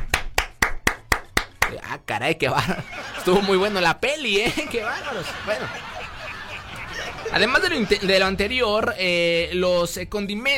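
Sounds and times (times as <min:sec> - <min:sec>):
applause: 0:00.0 - 0:01.8
speech: 0:02.1 - 0:05.9, 0:07.3 - 0:10.5
laughter: 0:02.6 - 0:08.7.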